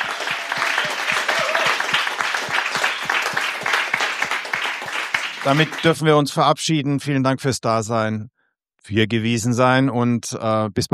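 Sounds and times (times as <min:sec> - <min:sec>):
applause from an audience of about 500 people at an event on obesity: 0:00.0 - 0:06.3
speech: 0:05.4 - 0:10.9.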